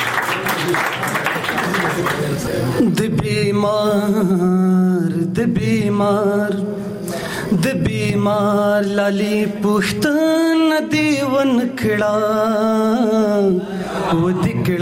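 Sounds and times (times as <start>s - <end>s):
audience applause for a poet at a poetry recital: 0.0s - 2.7s
speech: 0.7s - 1.0s, 2.4s - 14.8s.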